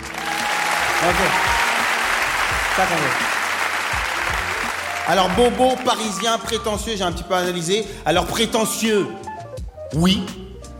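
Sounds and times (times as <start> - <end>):
audience applauding: 0.0 - 6.6
speech: 1.0 - 1.6, 2.8 - 3.4, 5.1 - 9.3, 9.9 - 10.4.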